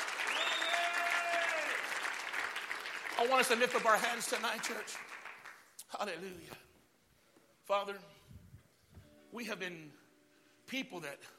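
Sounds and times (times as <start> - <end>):
audience clapping: 0.0 - 5.9
speech: 3.2 - 5.2, 5.9 - 6.7, 7.7 - 8.2, 9.3 - 10.0, 10.7 - 11.3.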